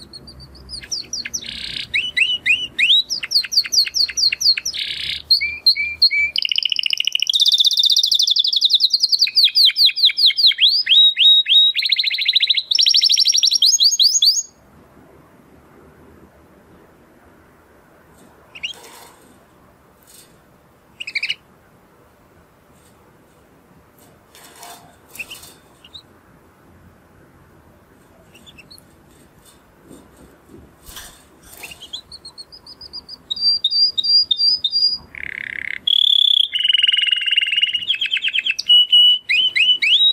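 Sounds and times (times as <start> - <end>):
canary singing: 0.0 - 14.6, 18.5 - 19.0, 20.9 - 21.5, 24.6 - 26.1, 28.2 - 28.9, 30.9 - 40.1.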